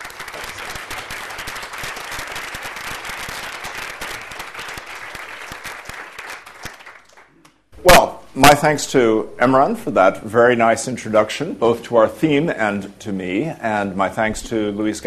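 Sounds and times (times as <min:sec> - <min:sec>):
audience applause welcoming a lecturer at a literary festival: 0:00.0 - 0:07.4
speech: 0:07.8 - 0:15.0.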